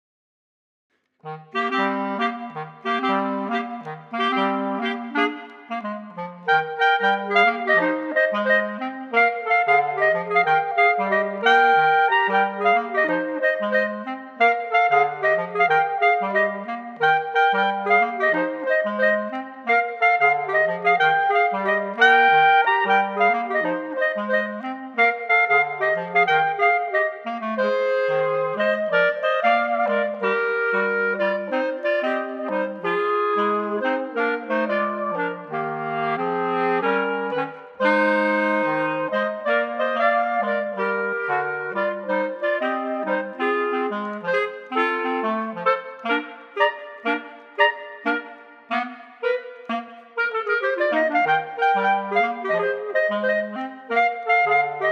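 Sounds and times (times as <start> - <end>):
clarinet trio: 1.2 - 54.8.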